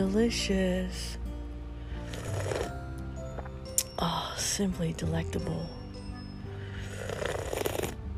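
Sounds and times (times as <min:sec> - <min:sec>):
speech: 0:00.0 - 0:01.2, 0:04.0 - 0:05.8
slurping coffee: 0:02.0 - 0:03.5, 0:06.8 - 0:08.0.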